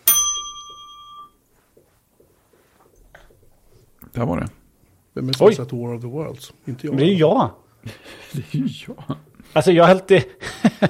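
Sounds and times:
chime ping: 0.0 - 1.4
speech: 4.2 - 4.6, 5.2 - 10.8
laughter: 10.2 - 10.8.

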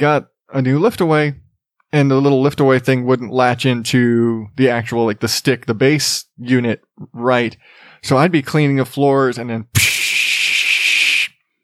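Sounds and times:
speech: 0.0 - 9.9
vocal imitation of steam hissing: 9.8 - 11.4.

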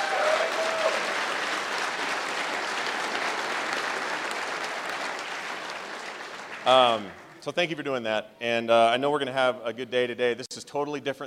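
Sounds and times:
audience applause: 0.0 - 7.4
speech: 6.6 - 11.2.

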